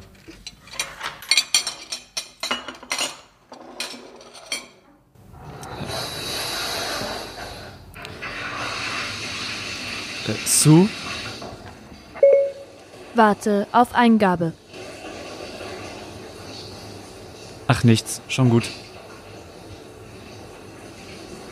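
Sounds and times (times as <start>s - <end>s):
clearing dishes and cutlery from table: 0.0s - 4.9s
speech: 10.3s - 11.0s, 13.2s - 14.6s, 17.7s - 18.8s.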